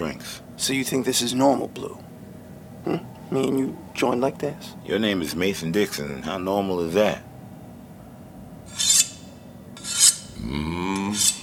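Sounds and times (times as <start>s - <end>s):
low humming drone with a rising pitch: 0.0s - 11.4s
speech: 0.1s - 2.2s, 2.8s - 7.3s
blade being sharpened by friction: 8.7s - 10.4s, 11.0s - 11.4s.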